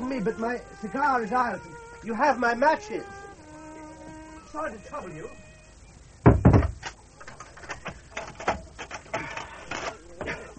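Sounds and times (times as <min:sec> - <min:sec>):
speech: 0:00.1 - 0:03.2, 0:04.5 - 0:05.4
shutters being barred: 0:06.3 - 0:10.5.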